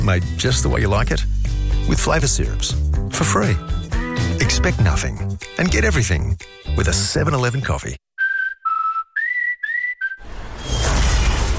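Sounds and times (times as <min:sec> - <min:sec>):
speech: 0:00.0 - 0:08.0
falling space capsule whistle: 0:08.2 - 0:11.4
space capsule crash: 0:10.2 - 0:11.5.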